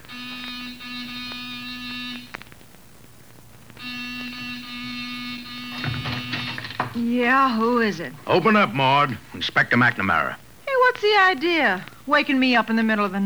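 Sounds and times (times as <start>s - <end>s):
door buzzer being pressed: 0.0s - 2.5s, 3.8s - 10.3s
speech: 7.2s - 10.4s, 11.0s - 13.2s.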